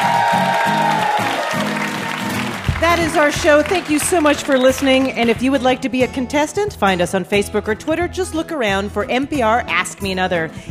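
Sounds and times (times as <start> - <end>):
audience applause: 0.0 - 5.4
speech: 2.8 - 10.6.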